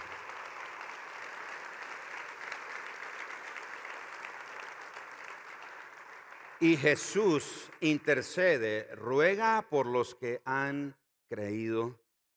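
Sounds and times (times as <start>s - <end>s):
crowd applauding: 0.0s - 8.4s
speech: 6.6s - 12.0s.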